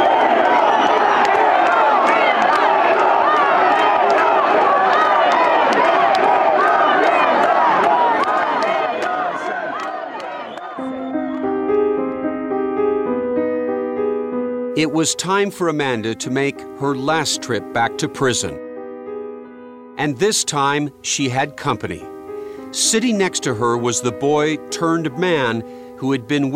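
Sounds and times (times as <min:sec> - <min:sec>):
agitated crowd roaring and shouting outside a courthouse: 0:00.0 - 0:11.5
sustained tonal music: 0:10.6 - 0:26.5
speech: 0:14.8 - 0:18.6, 0:20.0 - 0:22.1, 0:22.7 - 0:26.5.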